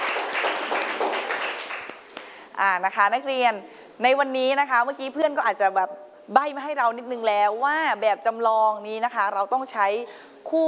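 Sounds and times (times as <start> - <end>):
students clapping in a classroom after a group presentation: 0.0 - 2.2
speech: 2.6 - 10.6.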